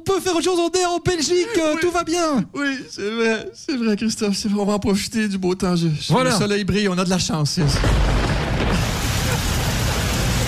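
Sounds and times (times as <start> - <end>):
speech: 0.0 - 8.9
rain falling: 8.0 - 10.4.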